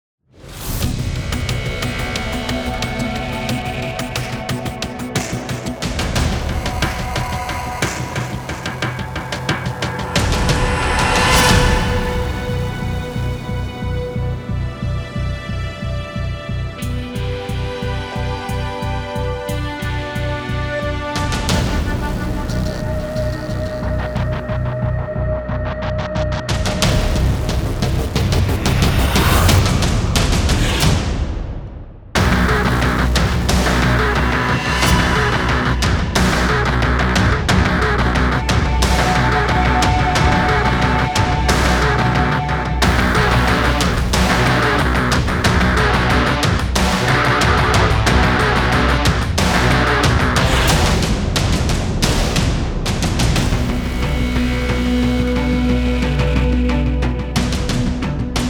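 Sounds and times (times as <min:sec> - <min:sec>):
electronic action music: 0:00.6 - 0:16.0, 0:16.8 - 0:31.2, 0:32.2 - 0:58.4.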